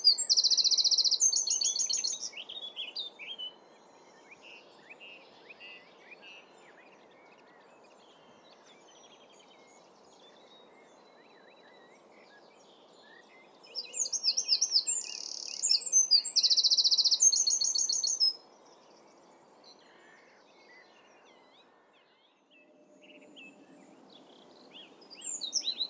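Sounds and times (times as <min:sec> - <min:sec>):
wren song of high trills and warbles: 0:00.0 - 0:25.8.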